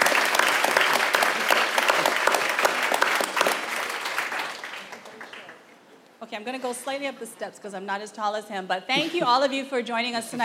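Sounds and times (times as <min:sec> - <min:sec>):
audience applause welcoming a speaker to the stage at an evening talk: 0:00.0 - 0:05.7
speech: 0:06.4 - 0:10.4.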